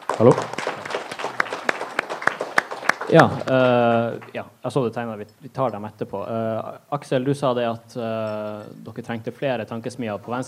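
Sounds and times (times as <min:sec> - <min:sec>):
brief small applause: 0:00.0 - 0:04.3
speech: 0:00.2 - 0:00.6, 0:03.1 - 0:10.4.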